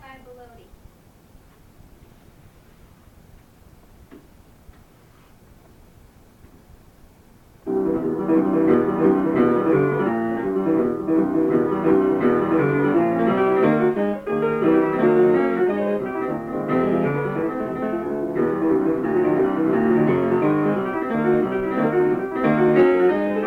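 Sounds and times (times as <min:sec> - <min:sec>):
music club rehearsal: 0:07.7 - 0:23.4.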